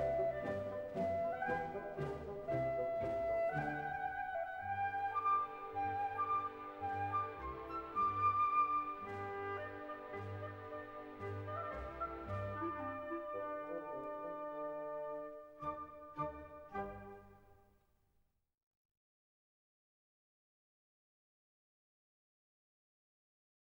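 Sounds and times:
orchestra playing an entr'acte from a suite: 0.0 - 17.4.

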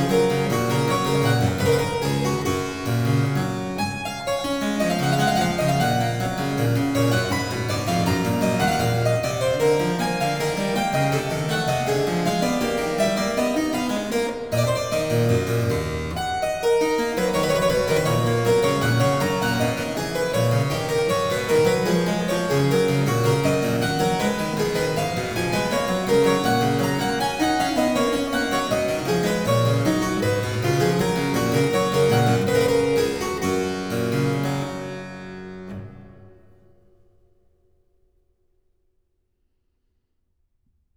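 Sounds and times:
bourree for keyboard in G major: 0.0 - 36.7.

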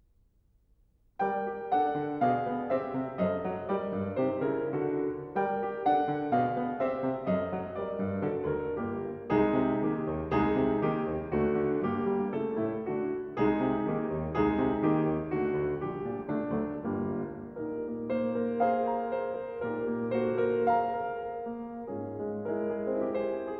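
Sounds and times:
piano improvisation in G minor: 1.2 - 23.5.

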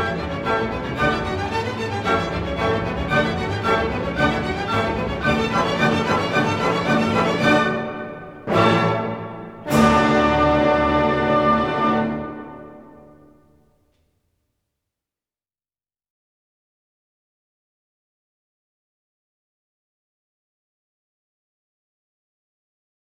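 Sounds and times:
violin concerto rondo allegro spirituoso: 0.0 - 13.4.

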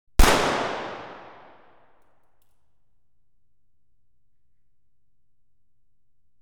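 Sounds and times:
pistol: 0.2 - 2.0.

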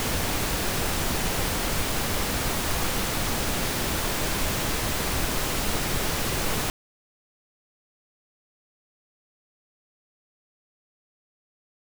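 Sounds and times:
stereo pink noise reference tone: 0.0 - 6.7.

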